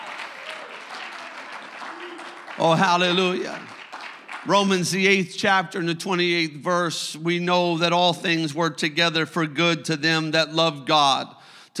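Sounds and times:
audience clapping: 0.0 - 5.2
speech: 2.6 - 3.7, 4.4 - 11.7.

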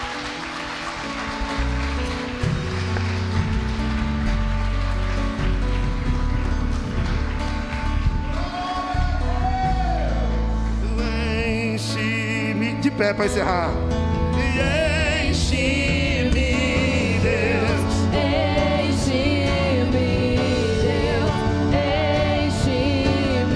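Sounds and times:
audience applauding loudly: 0.0 - 11.0
sustained keyboard-like music tones: 0.0 - 23.5
speech: 13.0 - 14.0.

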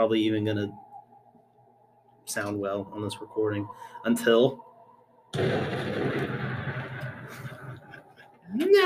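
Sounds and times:
speech: 0.0 - 0.8, 2.3 - 4.7, 5.3 - 6.6, 8.5 - 8.8
explosion: 5.3 - 8.2
burst of flame: 5.4 - 8.2.

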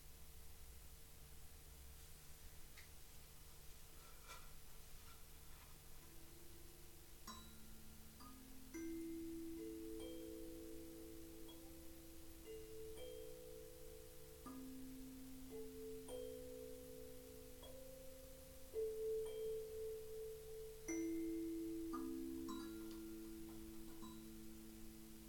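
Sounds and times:
bowls ringing: 7.3 - 25.1.

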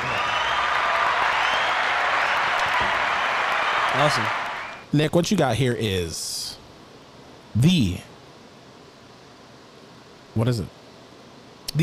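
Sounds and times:
round of applause from a group: 0.0 - 4.8
speech: 4.0 - 6.4, 7.6 - 8.1, 10.4 - 10.8.

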